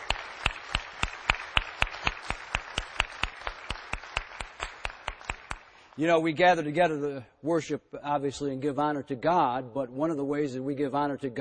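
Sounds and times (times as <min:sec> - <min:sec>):
audience applause: 0:00.0 - 0:05.9
speech: 0:06.0 - 0:11.3.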